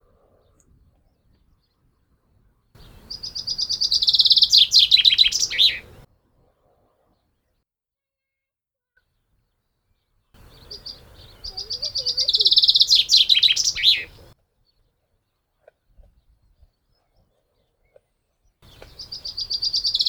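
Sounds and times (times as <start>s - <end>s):
common chaffinch Fringilla coelebs song: 2.8s - 6.0s, 10.4s - 14.3s, 18.6s - 20.0s.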